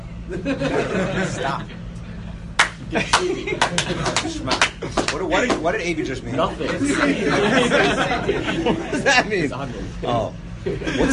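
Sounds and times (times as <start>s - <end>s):
speech: 0.3s - 1.8s, 2.9s - 11.1s
laughter: 0.3s - 1.9s, 2.8s - 11.1s
sharp hand claps: 2.5s - 5.6s.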